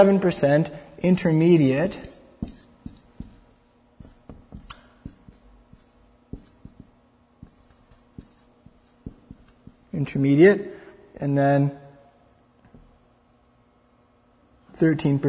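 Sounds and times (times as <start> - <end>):
speech: 0.0 - 2.6, 10.0 - 11.8, 14.8 - 15.2
writing by hand: 1.9 - 10.0.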